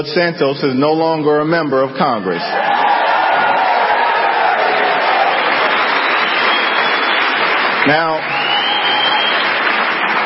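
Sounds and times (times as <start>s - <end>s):
speech: 0.0s - 2.8s, 7.8s - 8.4s
audience applause at a dinner: 2.6s - 10.2s.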